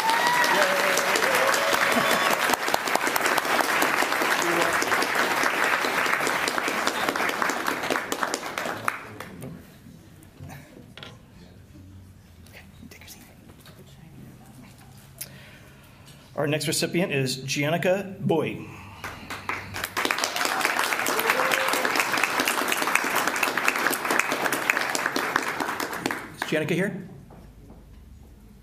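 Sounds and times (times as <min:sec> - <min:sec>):
audience applause: 0:00.0 - 0:09.4, 0:19.0 - 0:26.6
speech: 0:16.5 - 0:18.8, 0:26.5 - 0:27.2.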